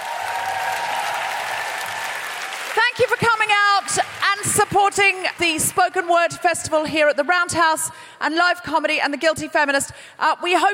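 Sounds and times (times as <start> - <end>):
audience applause: 0.0 - 5.9
speech: 4.5 - 10.7.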